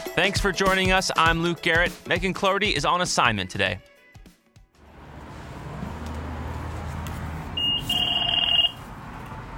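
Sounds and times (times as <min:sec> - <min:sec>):
speech: 0:00.2 - 0:03.9
bus fare box payment beep: 0:07.6 - 0:08.8.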